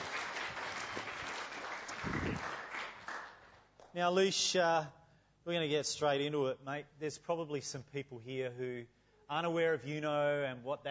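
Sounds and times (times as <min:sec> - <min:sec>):
audience clapping: 0:00.0 - 0:04.0
speech: 0:04.0 - 0:10.8.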